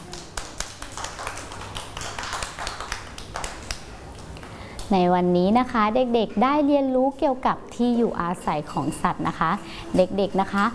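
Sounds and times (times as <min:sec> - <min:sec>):
children clapping hands: 0:00.0 - 0:03.9
speech: 0:04.9 - 0:10.7.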